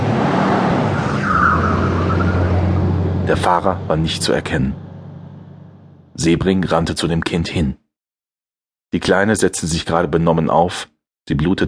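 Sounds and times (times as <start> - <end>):
tires squealing: 0.0 - 5.9
car engine roaring: 0.0 - 6.2
speech: 3.3 - 4.8, 6.2 - 7.8, 8.9 - 11.6.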